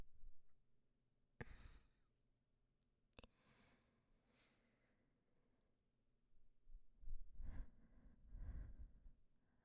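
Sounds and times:
person breathing in sleep: 1.4 - 2.0, 3.3 - 5.0, 7.4 - 9.6.

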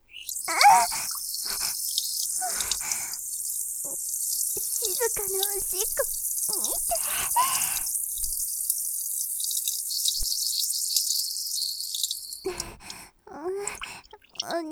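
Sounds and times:
person urinating: 0.1 - 13.0, 13.7 - 14.6.

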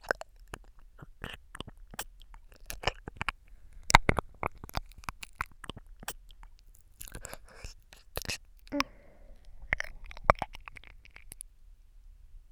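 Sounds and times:
onahole stroking sounds: 0.0 - 8.8
ear licking ASMR: 0.0 - 9.0, 9.7 - 11.4.

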